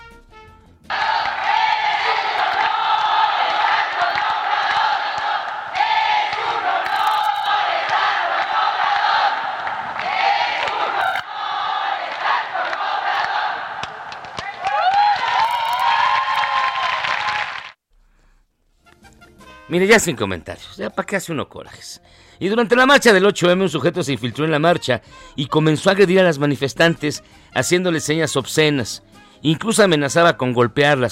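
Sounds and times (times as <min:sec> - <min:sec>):
crowd cheering: 0:00.9 - 0:17.8
speech: 0:19.7 - 0:31.1.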